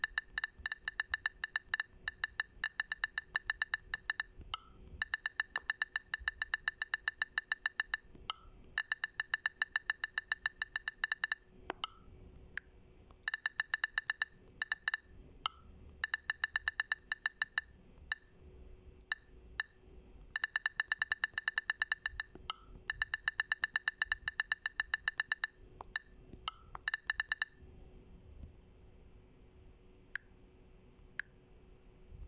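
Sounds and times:
Huawei phone typing sound: 0.0s - 12.0s, 13.1s - 18.3s, 19.0s - 27.6s.

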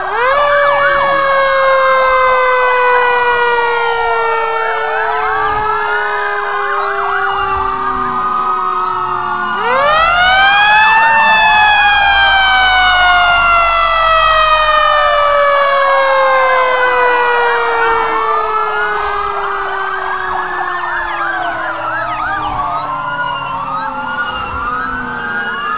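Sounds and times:
fire truck siren: 0.0s - 25.7s.

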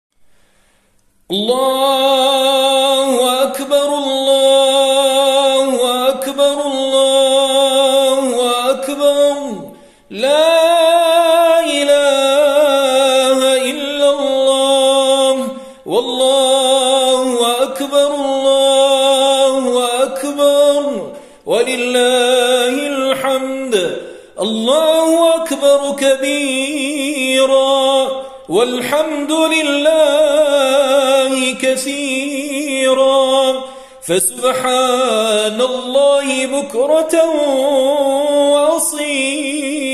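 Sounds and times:
Eid al-Fitr takbir chanting: 1.3s - 39.9s.

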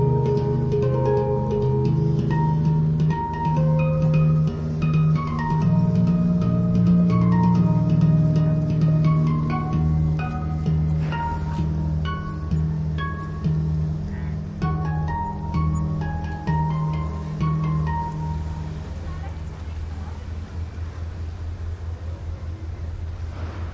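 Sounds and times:
handpan playing: 0.0s - 23.5s.

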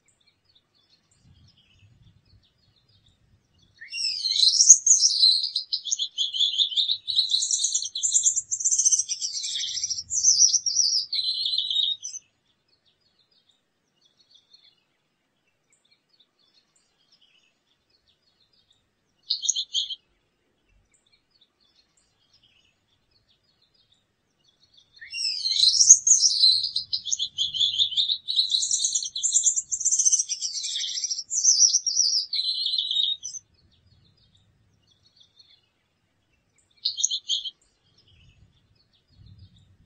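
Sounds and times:
Gouldian finch singing: 0.5s - 12.2s, 18.5s - 20.2s, 21.6s - 39.8s.

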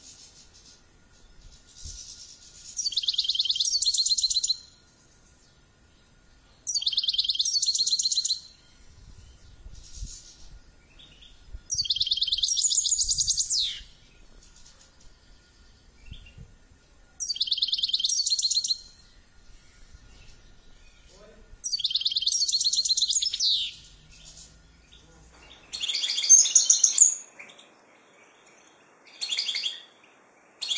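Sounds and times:
finch chirping: 1.4s - 4.7s, 6.7s - 8.6s, 9.4s - 15.1s, 17.2s - 19.0s, 20.0s - 26.9s.

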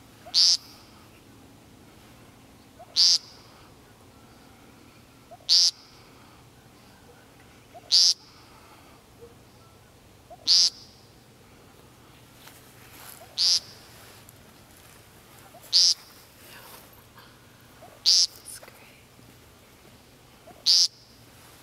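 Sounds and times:
woodcock calls: 0.2s - 1.3s, 2.6s - 3.7s, 5.3s - 8.5s, 9.2s - 11.2s, 13.1s - 13.9s, 15.4s - 16.2s, 17.7s - 18.6s, 20.4s - 21.1s.

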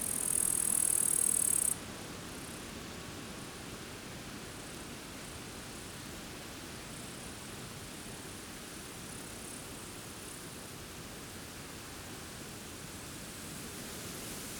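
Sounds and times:
grasshoppers chirping near a forest: 0.0s - 1.8s
wind near a forest: 0.0s - 14.5s.

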